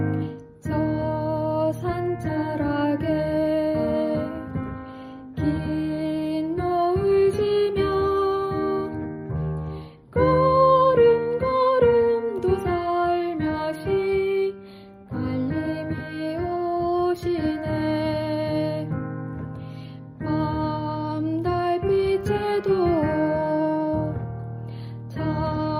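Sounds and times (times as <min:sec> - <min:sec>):
soprano singing: 0:00.2 - 0:25.7.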